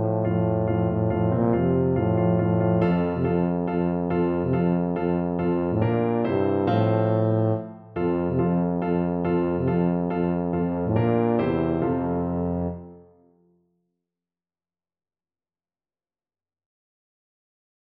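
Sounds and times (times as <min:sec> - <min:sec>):
tuba playing a classical piece: 0:00.0 - 0:13.1.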